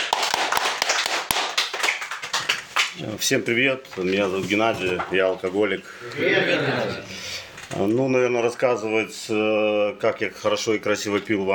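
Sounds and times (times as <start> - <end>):
small group clapping welcoming a speaker: 0.0 - 3.2
speech: 3.0 - 11.5.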